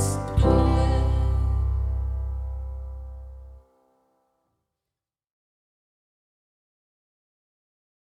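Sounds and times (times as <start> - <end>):
school song with bass: 0.0 - 3.6.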